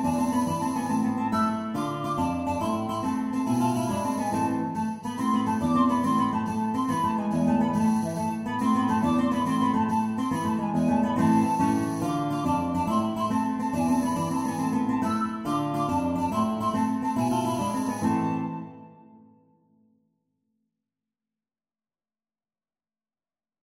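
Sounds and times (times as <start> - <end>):
tarantella dance music: 0.0 - 18.7.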